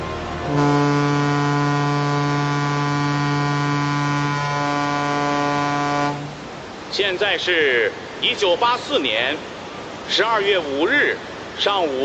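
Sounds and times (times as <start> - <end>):
Xiangyanghong 10 and J-121 ship horns sounding: 0.0 - 6.5
speech: 7.0 - 9.5, 10.1 - 12.0.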